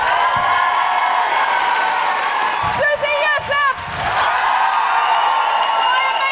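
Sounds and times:
audience applause: 0:00.0 - 0:06.2.

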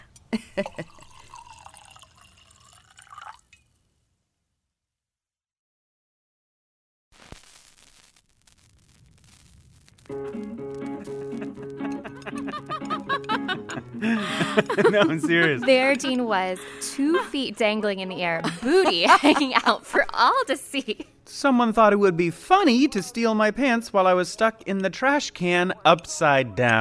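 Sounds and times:
speech: 0:00.3 - 0:01.0, 0:14.8 - 0:26.7
wine pouring into a glass: 0:00.4 - 0:03.6
laughter: 0:10.9 - 0:21.0.

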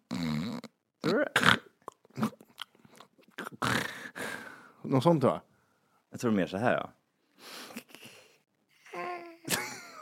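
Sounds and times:
voice imitating a spider snoring: 0:00.1 - 0:02.4, 0:03.4 - 0:04.0
speech: 0:01.0 - 0:01.5, 0:04.9 - 0:05.5, 0:06.2 - 0:07.5.

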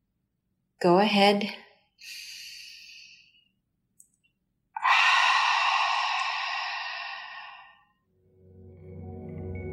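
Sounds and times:
speech: 0:00.8 - 0:02.2
deep breath exhaled through the mouth: 0:04.8 - 0:07.8.

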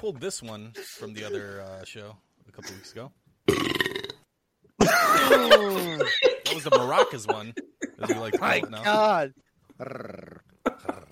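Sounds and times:
speech: 0:00.0 - 0:03.7, 0:05.1 - 0:10.5
burp: 0:03.5 - 0:04.3
laughter: 0:04.8 - 0:09.2.

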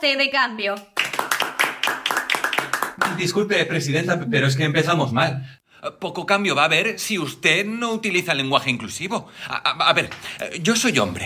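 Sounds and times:
speech: 0:00.0 - 0:00.9, 0:03.1 - 0:11.2
applause: 0:00.8 - 0:03.4.

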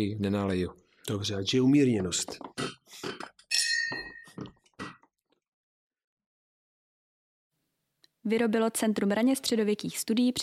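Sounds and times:
speech: 0:00.0 - 0:03.3, 0:08.2 - 0:10.4
wine glass set down after drinking: 0:03.5 - 0:04.5.

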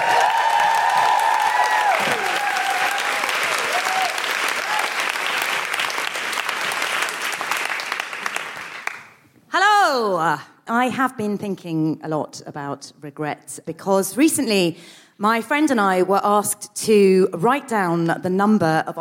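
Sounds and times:
audience applause welcoming a stand-up comedian at a comedy show: 0:00.0 - 0:09.2
speech: 0:10.3 - 0:18.9.

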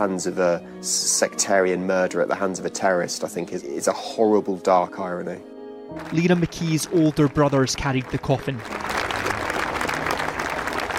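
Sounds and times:
speech: 0:00.0 - 0:09.0
crowds applauding at a young journalist's funeral in Belfast: 0:05.9 - 0:10.9.

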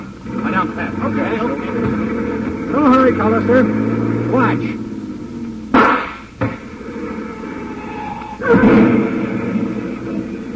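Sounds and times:
truck engine starting: 0:00.0 - 0:10.5
speech: 0:00.6 - 0:04.8
gunshot into tire: 0:05.7 - 0:06.7, 0:08.4 - 0:09.6.

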